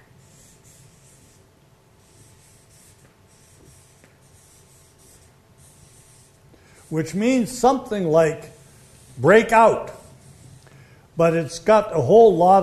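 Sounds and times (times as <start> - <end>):
handwriting scratching as words are written down: 0.0 - 7.0, 8.7 - 10.6
speech: 6.9 - 8.6, 9.2 - 10.0, 11.2 - 12.6.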